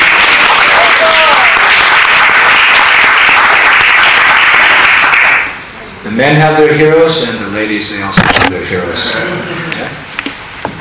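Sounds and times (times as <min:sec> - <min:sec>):
audience round of applause: 0:00.0 - 0:05.6
speech: 0:06.2 - 0:09.6.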